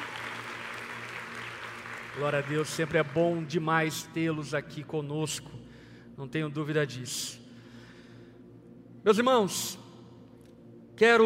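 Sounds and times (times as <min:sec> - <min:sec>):
audience applause: 0:00.0 - 0:03.4
speech: 0:02.2 - 0:05.6, 0:06.2 - 0:07.4, 0:09.0 - 0:09.8, 0:11.0 - 0:11.2.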